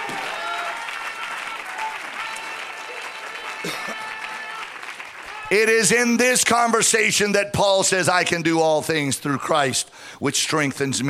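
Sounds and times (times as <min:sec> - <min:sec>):
crowd clapping: 0:00.0 - 0:06.8
speech: 0:05.5 - 0:11.0.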